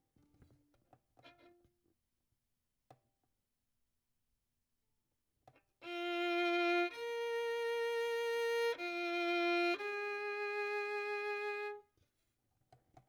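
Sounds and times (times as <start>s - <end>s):
violin: 1.2s - 1.7s, 5.8s - 11.9s.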